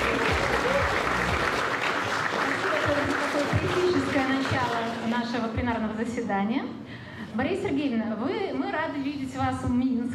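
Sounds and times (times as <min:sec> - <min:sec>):
applause from a large audience: 0:00.0 - 0:05.2
speech: 0:05.8 - 0:10.1.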